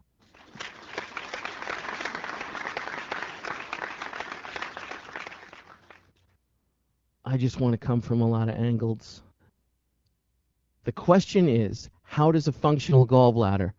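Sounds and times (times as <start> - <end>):
crowd applause sound effect: 0.2 - 6.1
speech: 7.3 - 9.3, 10.8 - 13.7.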